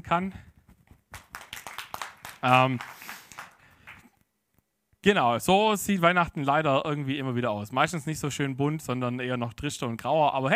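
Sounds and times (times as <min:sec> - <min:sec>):
speech: 0:00.0 - 0:00.5, 0:02.4 - 0:03.1, 0:05.0 - 0:10.5
applause: 0:01.1 - 0:04.1.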